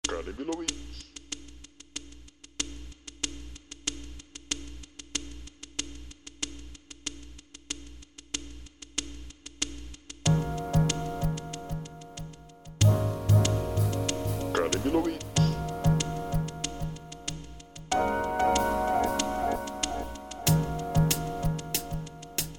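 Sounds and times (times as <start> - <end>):
music beat: 10.3 - 22.5.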